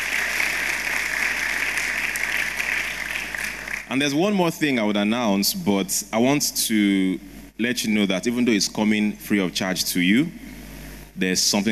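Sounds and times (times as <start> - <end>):
audience applause: 0.0 - 3.9
speech: 3.9 - 10.4, 11.2 - 11.6.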